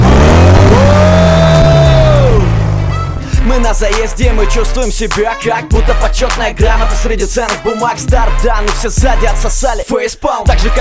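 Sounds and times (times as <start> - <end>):
car engine starting and revving: 0.0 - 5.2
speech: 3.7 - 10.7.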